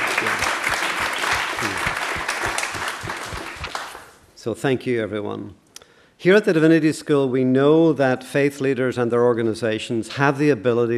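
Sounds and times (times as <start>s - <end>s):
audience round of applause: 0.0s - 4.2s
speech: 4.4s - 5.6s, 6.2s - 10.9s.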